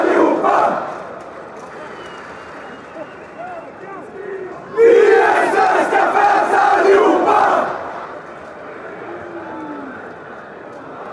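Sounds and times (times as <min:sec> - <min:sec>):
Swedish fans chanting: 0:00.0 - 0:01.1, 0:04.1 - 0:08.2.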